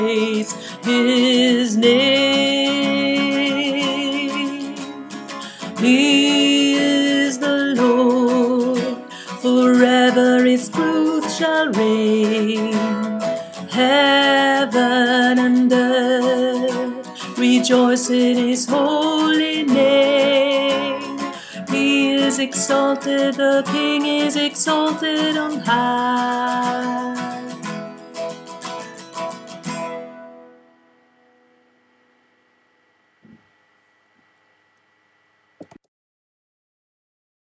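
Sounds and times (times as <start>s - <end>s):
tenor singing: 0.0s - 5.0s, 5.7s - 27.7s.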